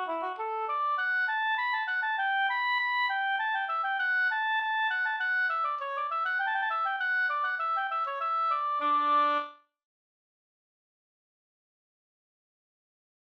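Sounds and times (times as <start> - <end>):
slangpolska storpolska folk music: 0.0 - 9.5.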